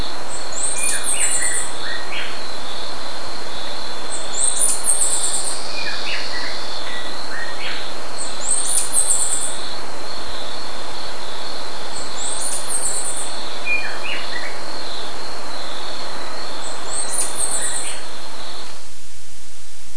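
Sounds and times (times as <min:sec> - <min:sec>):
bird calling with short high squeaky chirps: 0:00.0 - 0:18.7.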